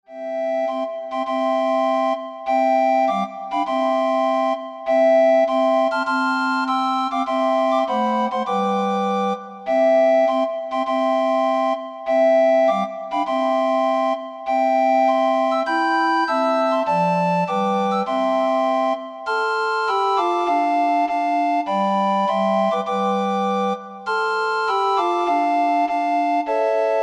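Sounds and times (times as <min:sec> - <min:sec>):
recorder ensemble: 0:00.2 - 0:27.0.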